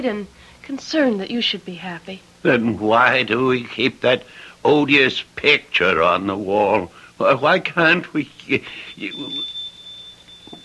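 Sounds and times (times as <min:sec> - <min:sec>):
speech: 0:00.0 - 0:09.6
tinkle of a shop door bell: 0:08.3 - 0:10.6.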